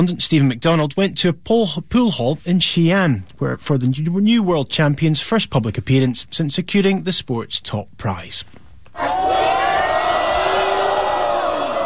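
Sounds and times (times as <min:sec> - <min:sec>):
speech: 0:00.0 - 0:09.3
crowd in a Xi'an pool hall cheering a world champion pool player: 0:09.0 - 0:11.8.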